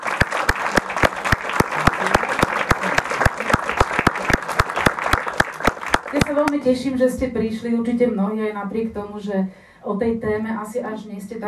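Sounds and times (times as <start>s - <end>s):
short round of applause: 0.0s - 6.6s
speech: 6.5s - 11.4s.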